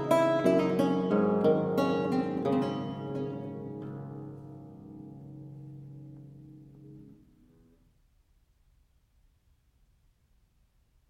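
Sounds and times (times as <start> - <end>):
lute playing a bourree in D minor: 0.0 - 7.6.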